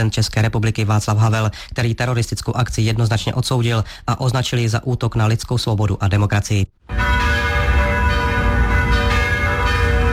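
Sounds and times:
speech: 0.0 - 7.2
bells of all Prague churches ringing: 6.8 - 10.1.

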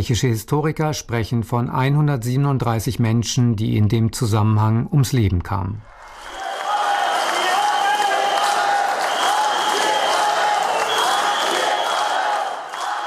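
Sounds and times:
speech: 0.0 - 6.0
large crowd roaring: 5.9 - 13.0
shrill whistles: 5.9 - 13.0
crowd chanting a name: 6.2 - 13.0.

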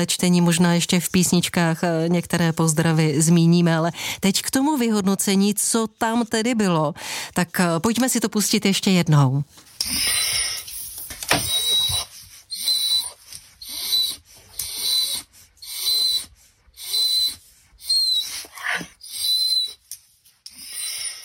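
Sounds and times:
speech: 0.0 - 10.4
large wolfdog whining: 9.8 - 19.9, 20.5 - 21.2.

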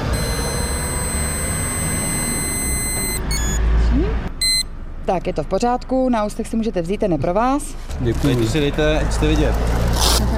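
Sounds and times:
breathalyzer tone during steady exhale into tube: 0.1 - 3.7, 4.4 - 4.7
speech: 5.1 - 10.2.

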